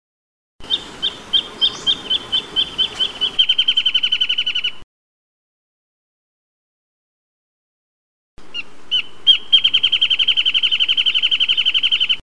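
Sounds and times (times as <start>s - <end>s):
wrentit chirping: 0.6s - 4.8s, 8.5s - 12.2s.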